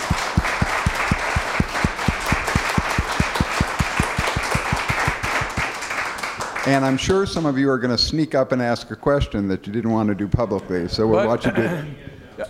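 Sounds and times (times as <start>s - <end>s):
audience applause: 0.0s - 7.2s
speech: 6.7s - 12.4s.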